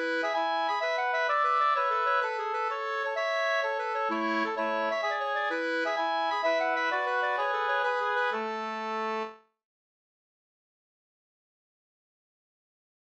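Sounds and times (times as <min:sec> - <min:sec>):
polska dance tune: 0:00.0 - 0:09.4.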